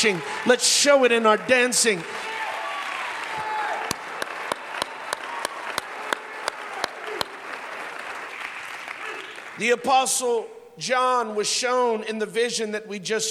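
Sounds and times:
speech: 0.0 - 2.4, 9.6 - 13.2
audience clapping hands: 0.0 - 9.9.

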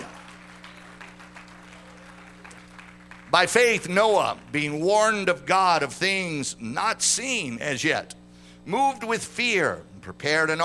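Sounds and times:
church congregation clapping hands in praise: 0.0 - 4.5
speech: 3.3 - 10.6.

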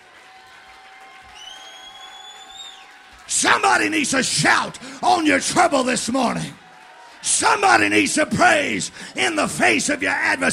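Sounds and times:
crowd clapping: 0.0 - 10.5
faint cheering: 0.0 - 10.5
speech: 3.3 - 6.6, 7.3 - 10.5.

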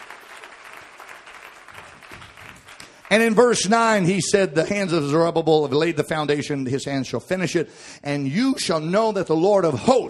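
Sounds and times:
audience clapping hands: 0.0 - 4.1
speech: 3.1 - 10.0.

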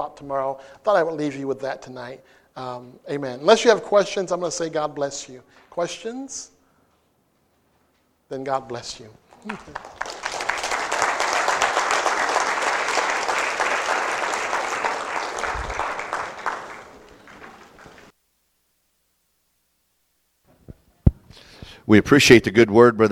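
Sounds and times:
speech: 0.0 - 6.6, 8.3 - 10.0, 21.9 - 23.1
audience applause: 9.4 - 18.1.

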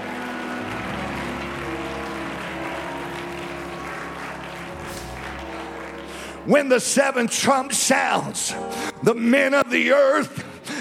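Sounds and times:
audience clapping hands: 0.0 - 8.3
speech: 6.4 - 10.7.

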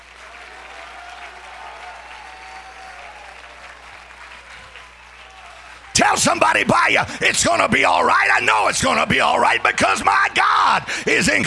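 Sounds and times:
audience clapping hands: 0.0 - 8.1
speech: 6.0 - 11.4.

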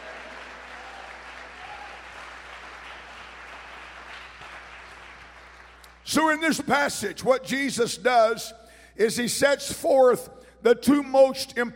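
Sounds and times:
audience clapping hands: 0.0 - 6.1
speech: 6.1 - 11.7.

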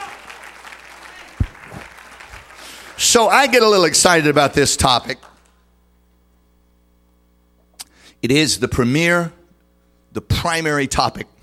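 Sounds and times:
church congregation clapping during a sermon: 0.0 - 5.7
speech: 3.0 - 5.3, 8.2 - 9.4, 10.1 - 11.4.

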